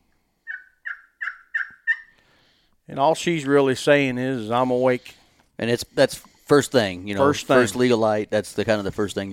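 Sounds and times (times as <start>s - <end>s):
soft turkey tree yelp played on a call: 0.5s - 2.1s
speech: 2.9s - 9.3s.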